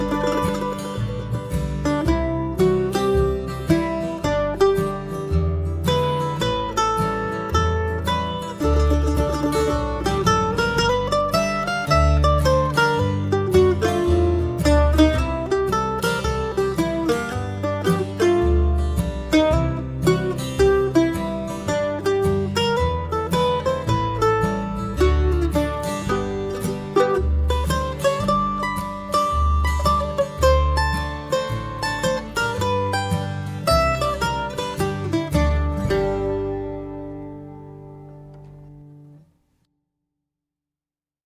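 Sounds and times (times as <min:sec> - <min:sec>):
mandolin playing: 0:00.0 - 0:39.3.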